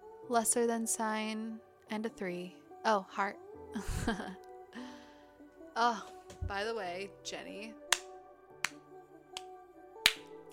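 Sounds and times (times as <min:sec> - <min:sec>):
speech: 0:00.3 - 0:04.5, 0:05.8 - 0:07.8
sharp hand claps: 0:07.9 - 0:08.8, 0:09.4 - 0:10.3.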